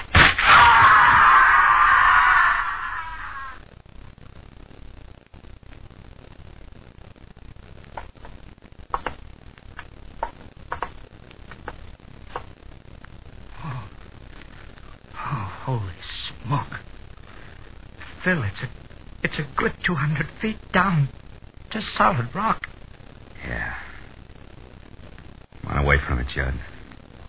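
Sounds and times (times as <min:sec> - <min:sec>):
woman screaming as she falls over railing: 0:00.4 - 0:03.6
faint clicks and knocks: 0:07.8 - 0:13.2
speech: 0:18.3 - 0:18.8, 0:19.4 - 0:22.6, 0:26.1 - 0:26.8.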